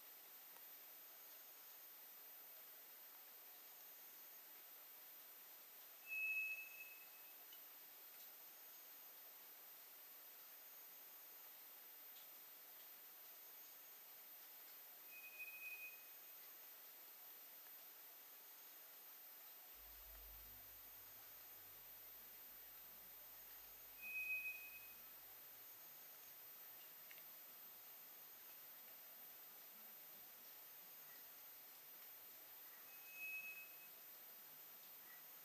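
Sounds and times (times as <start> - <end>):
background hiss: 0.0 - 35.4
White's thrush whistling: 6.0 - 7.2, 15.1 - 16.1, 24.0 - 25.0, 32.9 - 33.9.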